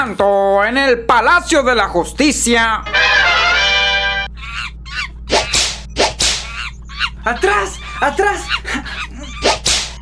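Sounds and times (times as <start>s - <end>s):
speech: 0.0s - 3.3s, 7.2s - 9.1s
harmonic honking squawk: 2.9s - 10.0s
whip cracking: 5.3s - 6.5s, 9.4s - 10.0s.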